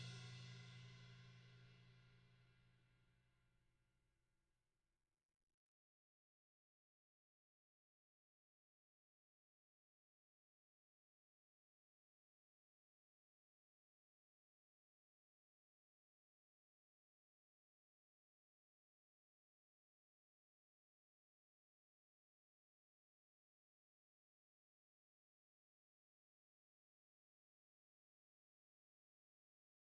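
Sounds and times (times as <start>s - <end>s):
drums: 0.0s - 2.0s.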